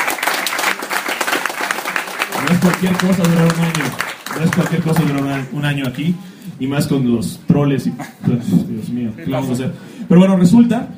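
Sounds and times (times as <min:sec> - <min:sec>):
applause at a comic-book café anniversary celebration: 0:00.0 - 0:05.7
speech: 0:02.4 - 0:10.9.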